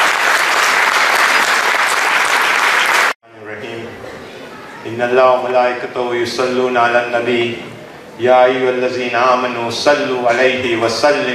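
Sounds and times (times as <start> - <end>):
loud dense applause from a large crowd: 0.0 - 3.2
speech: 5.0 - 11.3.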